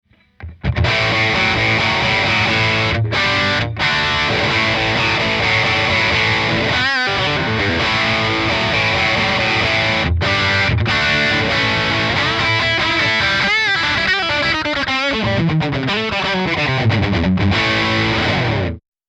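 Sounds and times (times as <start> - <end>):
Valeton Omni IR distortion effect: 0.0 - 18.8.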